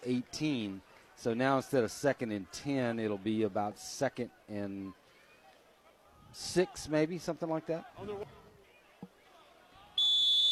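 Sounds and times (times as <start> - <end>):
speech: 0.0 - 5.0, 6.3 - 8.4
referee's whistle blow: 10.0 - 10.5.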